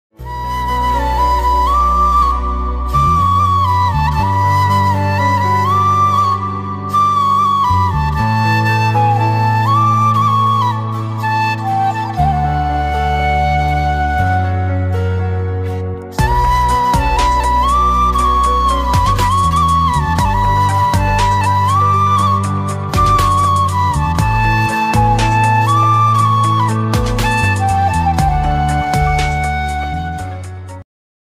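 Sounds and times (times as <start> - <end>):
flute ringtone: 0.2 - 15.4, 16.2 - 30.8.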